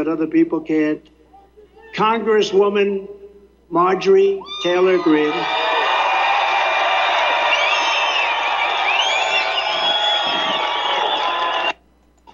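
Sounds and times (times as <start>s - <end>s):
speech: 0.0s - 1.1s, 1.9s - 5.6s
high-pitched shouts: 4.4s - 11.7s
large rally crowd cheering and whooping: 4.5s - 11.8s.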